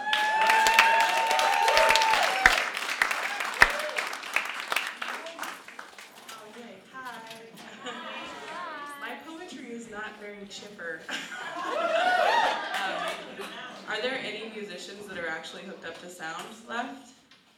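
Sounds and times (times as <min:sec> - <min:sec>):
audience applause at a Seattle poetry slam: 0:00.0 - 0:06.3, 0:11.8 - 0:13.7
laughter: 0:07.6 - 0:09.1, 0:11.1 - 0:14.0.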